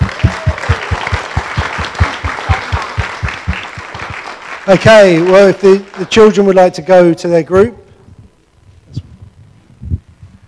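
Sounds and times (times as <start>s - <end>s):
group applause: 0.0s - 6.8s
speech: 4.7s - 7.8s.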